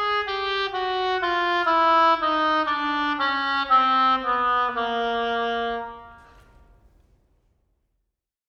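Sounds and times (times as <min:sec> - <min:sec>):
oboe: 0:00.0 - 0:06.5.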